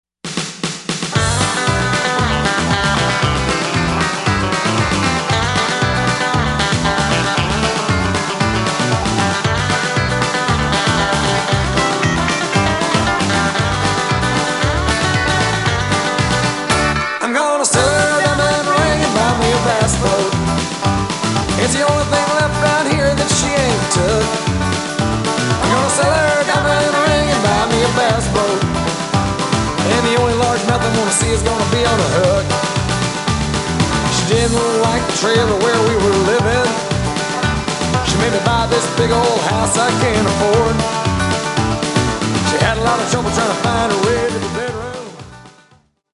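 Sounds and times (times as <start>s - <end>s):
bass: 1.1s - 17.2s, 17.8s - 46.0s.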